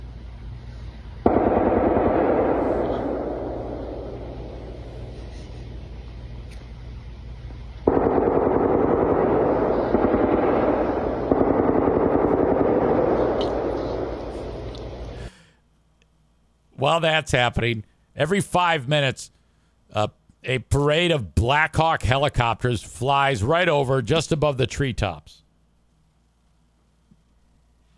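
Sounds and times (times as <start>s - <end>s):
machine gun fire from war games: 1.2s - 5.4s, 7.8s - 15.0s
speech: 16.9s - 25.4s.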